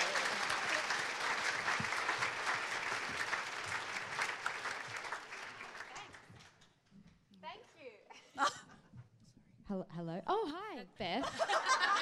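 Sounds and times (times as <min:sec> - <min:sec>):
audience applause: 0:00.0 - 0:06.6
speech: 0:10.0 - 0:11.9
laughter: 0:11.2 - 0:11.9.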